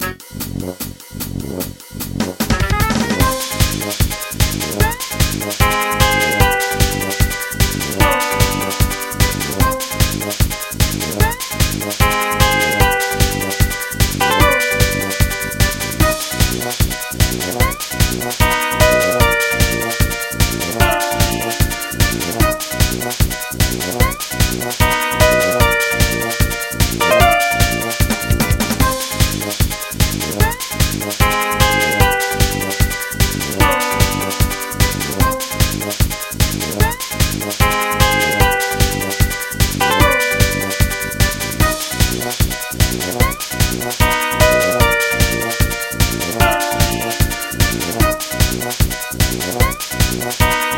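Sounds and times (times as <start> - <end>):
remix music: 0.0 - 50.7.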